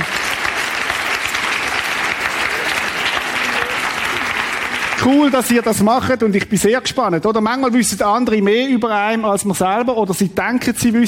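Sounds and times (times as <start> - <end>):
audience applause: 0.0 - 6.1
speech: 5.0 - 11.0.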